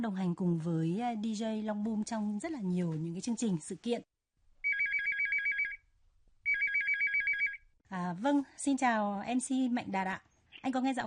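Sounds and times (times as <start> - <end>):
speech: 0.0 - 4.1, 8.0 - 11.0
warbling electronic telephone ringtone as a radio show calls a guest: 4.6 - 5.8, 6.5 - 7.6.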